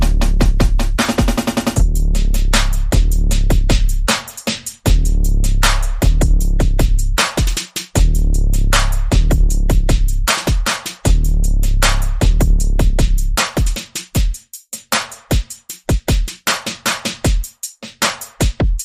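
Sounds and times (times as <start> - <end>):
bass: 0.0 - 13.8
percussion: 0.0 - 18.8.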